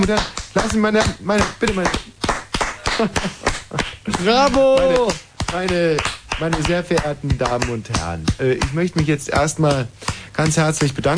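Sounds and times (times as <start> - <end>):
speech: 0.0 - 2.1, 3.0 - 11.1
audience clapping: 0.0 - 11.1.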